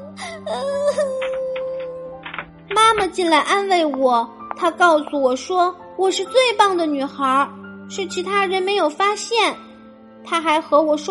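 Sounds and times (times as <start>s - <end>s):
voice imitating girl crying: 0.2s - 2.1s
speech: 3.0s - 9.7s, 10.3s - 11.0s.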